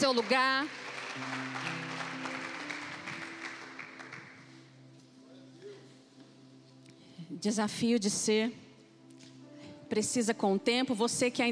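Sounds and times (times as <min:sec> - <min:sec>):
speech: 0:00.0 - 0:01.6, 0:07.3 - 0:08.6, 0:09.9 - 0:11.5
audience applause: 0:00.0 - 0:04.6.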